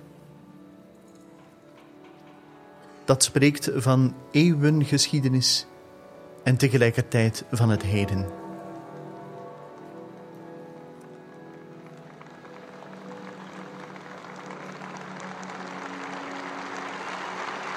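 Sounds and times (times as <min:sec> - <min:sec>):
speech: 0:03.1 - 0:05.7, 0:06.4 - 0:08.4
large crowd applauding on a square: 0:11.0 - 0:17.7.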